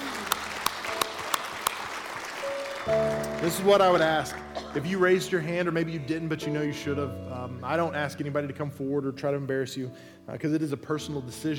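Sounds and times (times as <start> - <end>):
audience applause: 0.0 - 5.0
speech: 2.9 - 11.5.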